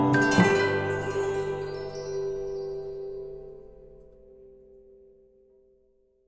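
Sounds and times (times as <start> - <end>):
expedition start jingle: 0.1 - 3.2.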